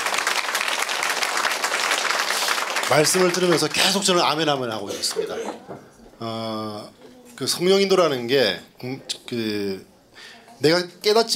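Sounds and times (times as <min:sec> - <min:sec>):
audience applause: 0:00.0 - 0:04.7
speech: 0:02.9 - 0:11.3.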